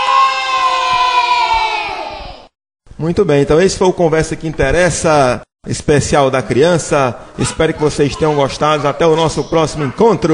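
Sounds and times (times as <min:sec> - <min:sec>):
children shouting a cheer at a school Children's Day celebration: 0:00.0 - 0:02.5
speech: 0:03.0 - 0:10.3.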